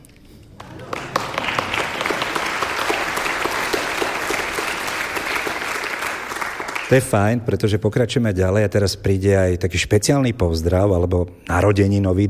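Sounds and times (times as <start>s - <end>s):
concert audience applause at a Slovak Radio concert: 0.5s - 7.2s
speech: 6.9s - 12.2s.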